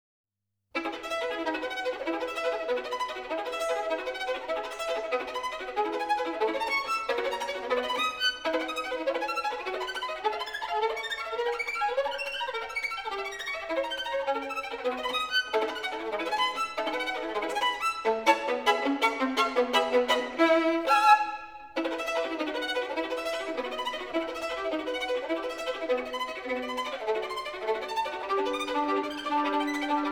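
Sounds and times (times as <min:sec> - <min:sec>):
caprice for solo violin in E major: 0:00.8 - 0:30.1.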